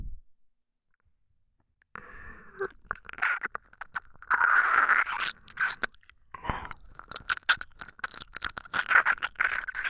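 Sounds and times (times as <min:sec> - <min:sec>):
ear licking: 0:02.7 - 0:09.8.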